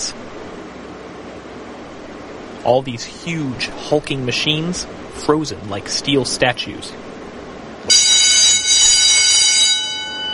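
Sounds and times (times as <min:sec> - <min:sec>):
speech: 0:02.6 - 0:07.1
loud factory doorbell ringing with harsh high-pitched electric bell tone: 0:07.9 - 0:10.3.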